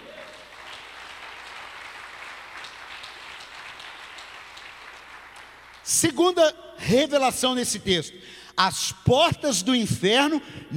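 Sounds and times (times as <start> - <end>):
audience applauding: 0.0 - 5.9
speech: 5.9 - 10.7.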